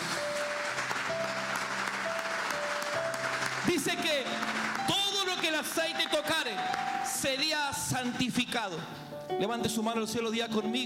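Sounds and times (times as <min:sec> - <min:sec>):
audience applause: 0:00.0 - 0:07.2
speech: 0:03.7 - 0:10.8.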